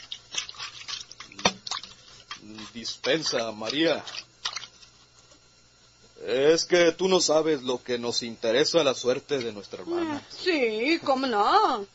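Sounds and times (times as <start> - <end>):
rags being washed by hand in water: 0.0 - 5.0
speech: 2.7 - 4.3, 6.2 - 11.9.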